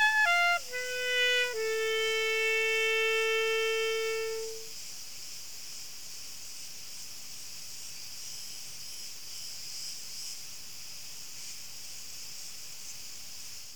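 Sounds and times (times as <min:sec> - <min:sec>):
cricket song as rapid pulsing high buzz: 0:00.0 - 0:04.7.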